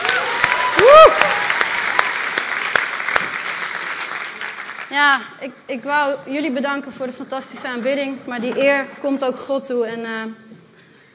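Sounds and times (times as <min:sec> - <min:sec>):
cheering whoop: 0:00.0 - 0:01.6
crowd applause for the band: 0:00.0 - 0:04.9
speech: 0:05.0 - 0:10.5.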